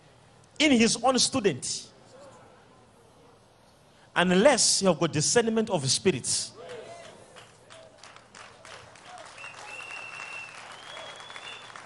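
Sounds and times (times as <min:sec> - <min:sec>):
speech: 0:00.6 - 0:01.9, 0:04.2 - 0:06.6
crowd clapping: 0:06.6 - 0:11.8
thin whistle-like tone: 0:09.4 - 0:11.8.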